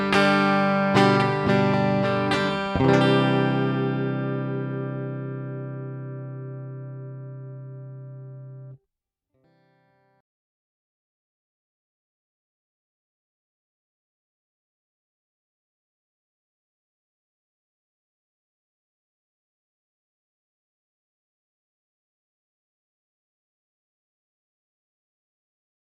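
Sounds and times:
Lindell RE-51 Telecaster electric guitar: 0:00.0 - 0:08.8.

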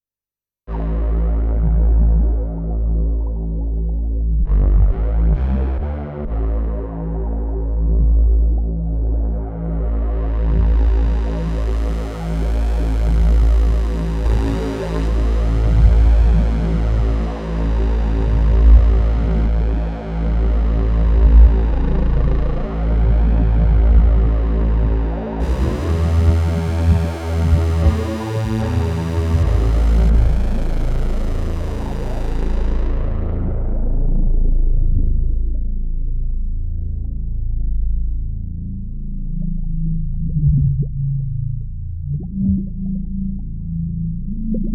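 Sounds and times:
deep low frequencies: 0:00.7 - 0:44.7.

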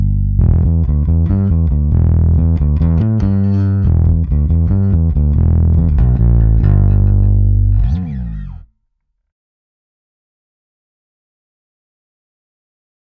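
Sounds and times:
distorted instrument tone through DI with neutral EQ: 0:00.2 - 0:08.7.

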